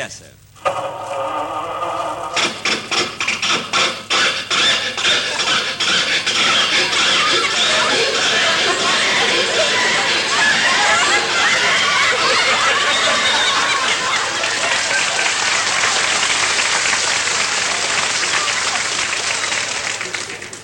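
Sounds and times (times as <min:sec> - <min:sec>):
speech: 0:00.0 - 0:01.6
old car engine failing to start: 0:00.6 - 0:20.6
laughter: 0:00.7 - 0:20.6.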